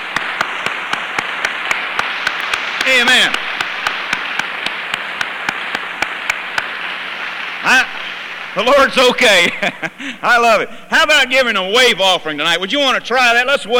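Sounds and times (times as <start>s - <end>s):
audience clapping hands: 0.0s - 9.6s
speech: 2.9s - 3.4s, 8.6s - 13.7s.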